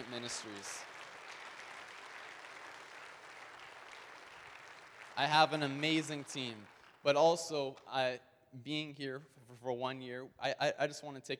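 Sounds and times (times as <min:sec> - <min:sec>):
crowd applause for volunteers: 0:00.0 - 0:07.5
speech: 0:00.1 - 0:01.0, 0:05.2 - 0:11.3.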